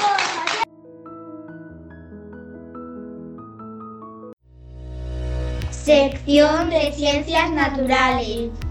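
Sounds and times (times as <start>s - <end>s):
children applauding: 0.0s - 0.7s
speech: 5.8s - 8.6s.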